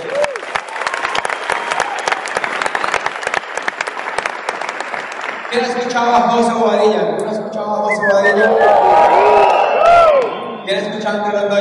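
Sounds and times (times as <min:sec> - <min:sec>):
audience clapping: 0:00.0 - 0:06.2, 0:09.1 - 0:10.4
speech: 0:05.5 - 0:09.2, 0:10.7 - 0:11.6.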